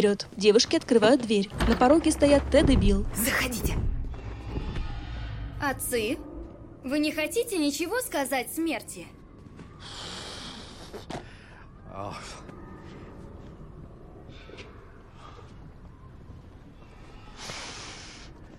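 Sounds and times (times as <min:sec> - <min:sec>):
speech: 0:00.0 - 0:03.9, 0:05.6 - 0:09.2, 0:12.0 - 0:12.5
deep anxious breathing: 0:03.9 - 0:06.8, 0:09.7 - 0:16.1, 0:16.8 - 0:18.5.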